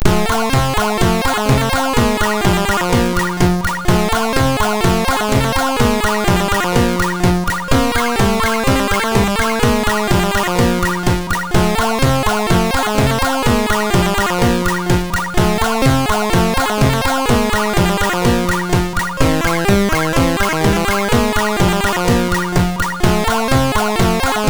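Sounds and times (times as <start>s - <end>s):
MOS 6581R2 SID chip music: 0.0s - 24.4s.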